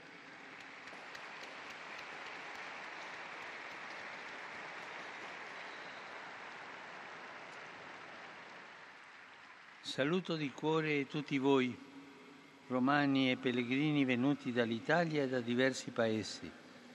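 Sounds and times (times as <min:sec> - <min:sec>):
applause: 0:00.0 - 0:09.8
speech: 0:09.9 - 0:11.9, 0:12.7 - 0:16.6.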